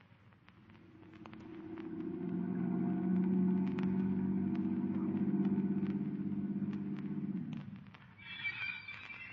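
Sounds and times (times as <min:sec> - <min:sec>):
car engine running: 0:01.1 - 0:07.8.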